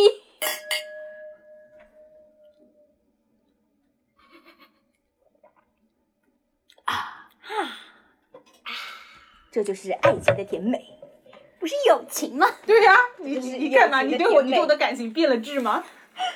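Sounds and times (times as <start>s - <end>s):
glasses clinking in a toast: 0.4s - 2.9s
speech: 9.6s - 11.0s, 11.6s - 16.0s.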